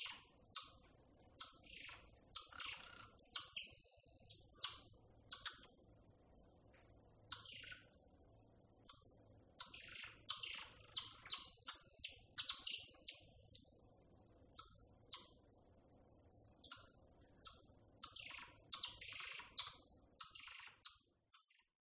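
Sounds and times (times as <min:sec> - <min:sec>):
golden lion tamarin whistles and chirps: 0:01.4 - 0:05.7, 0:07.3 - 0:07.9, 0:08.8 - 0:13.8, 0:14.5 - 0:15.4, 0:16.6 - 0:21.6.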